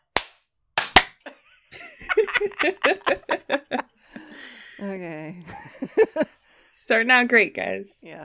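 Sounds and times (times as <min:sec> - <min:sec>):
group of people clapping once together: 0:00.1 - 0:01.2
laughter: 0:01.2 - 0:06.6
speech: 0:02.4 - 0:03.8, 0:04.8 - 0:08.2.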